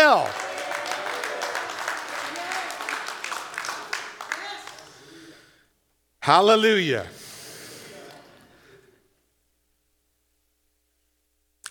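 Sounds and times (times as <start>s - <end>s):
audience applauding and cheering: 0.0s - 5.0s
speech: 0.1s - 0.5s, 6.3s - 7.2s.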